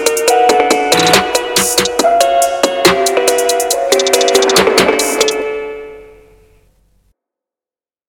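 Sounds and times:
phonk music: 0.0s - 6.4s.

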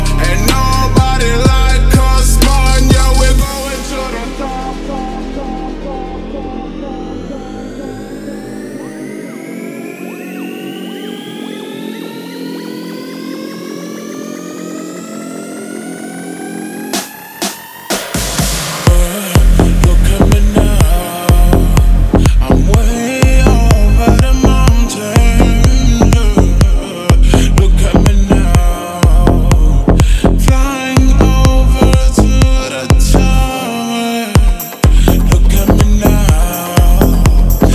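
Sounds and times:
loud club bass on front car audio: 0.0s - 9.8s, 17.9s - 33.6s, 34.4s - 37.7s.

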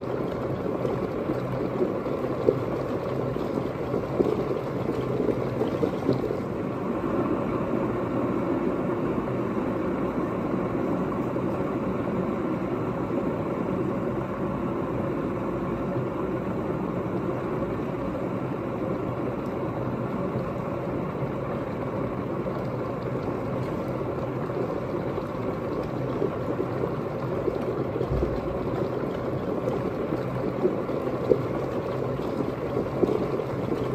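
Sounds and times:
boiling water: 0.0s - 33.9s.

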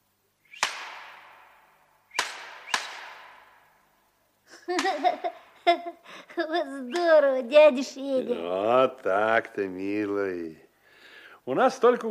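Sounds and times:
shepherd's whip cracking: 0.5s - 3.8s
speech: 4.7s - 10.6s, 11.4s - 12.0s.

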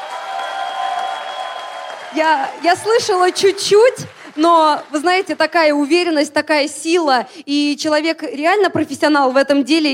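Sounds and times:
audience applause: 0.0s - 5.7s
speech: 2.1s - 9.9s.

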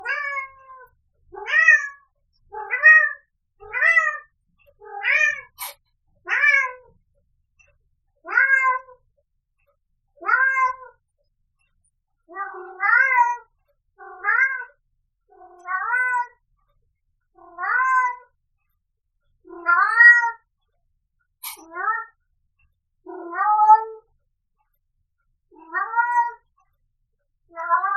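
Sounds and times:
cat meowing insistently: 0.0s - 2.0s, 2.6s - 6.9s, 8.3s - 9.0s, 10.2s - 11.0s, 12.3s - 14.7s, 15.4s - 16.4s, 17.4s - 18.3s, 19.5s - 20.4s, 21.4s - 22.2s, 23.1s - 24.0s, 25.6s - 26.5s, 27.5s - 27.9s.

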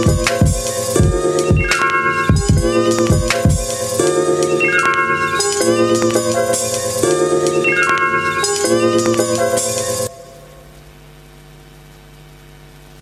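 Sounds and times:
music beat: 0.0s - 10.1s.

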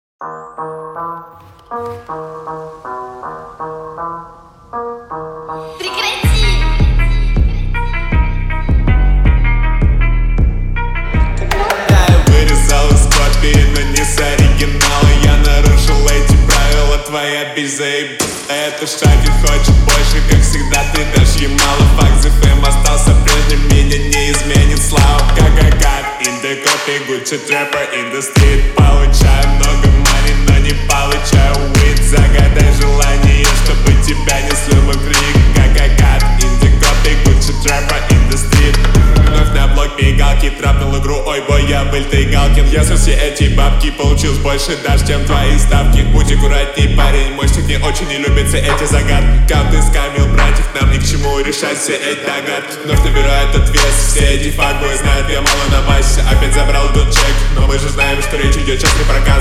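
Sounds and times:
slowed reverb music: 0.2s - 59.3s.

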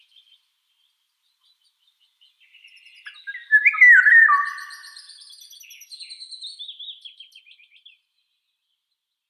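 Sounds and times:
Eurasian golden oriole whistling: 3.1s - 5.0s.

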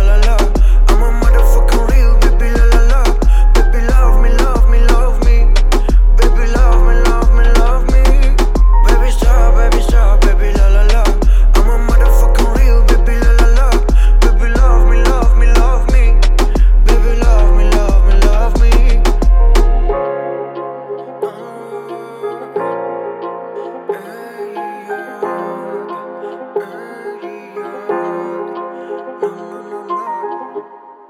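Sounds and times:
35-39Hz low bass tone: 0.0s - 20.0s.

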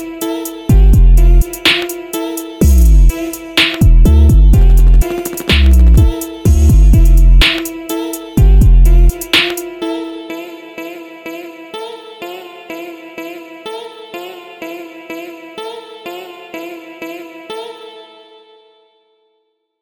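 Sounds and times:
music beat: 0.0s - 10.1s.

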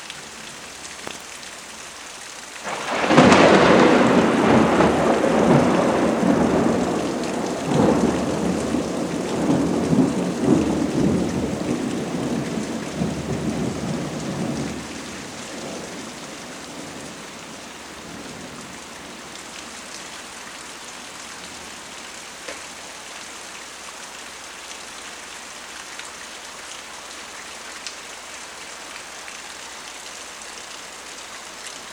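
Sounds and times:
rain: 0.0s - 31.9s
frequent heavy thunder: 2.7s - 19.4s.

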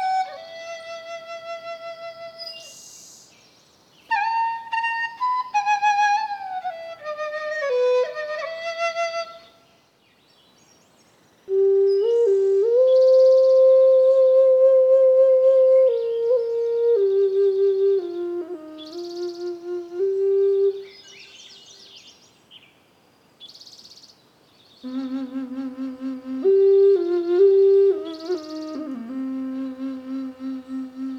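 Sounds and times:
relaxing Eastern music: 4.1s - 9.4s, 11.5s - 20.8s, 24.8s - 31.1s.

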